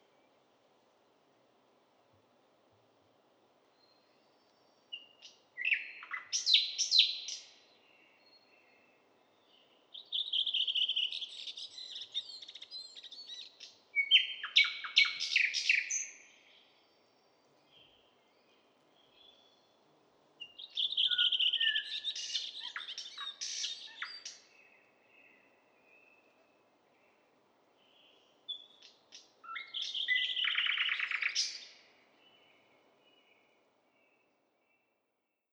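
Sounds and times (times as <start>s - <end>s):
thrush nightingale Luscinia luscinia singing: 4.9s - 8.8s, 9.4s - 16.7s, 20.4s - 26.4s, 27.8s - 34.9s.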